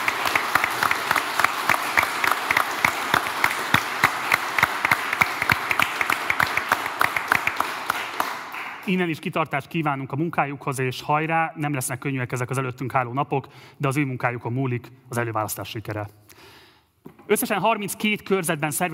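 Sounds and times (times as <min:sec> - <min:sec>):
audience applause in hall: 0:00.0 - 0:08.9
speech: 0:08.9 - 0:18.9.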